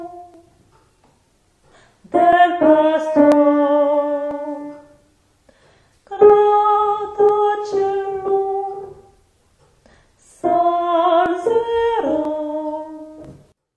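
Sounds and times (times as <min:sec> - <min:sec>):
soprano singing: 0:00.0 - 0:00.5, 0:02.1 - 0:05.0, 0:06.1 - 0:09.2, 0:10.2 - 0:13.5.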